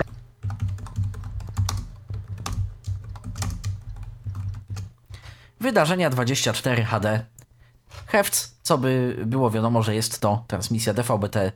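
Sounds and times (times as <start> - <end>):
rapid typing on a computer keyboard including the F2 key: 0.0 - 5.0
speech: 5.6 - 7.4, 8.1 - 11.5.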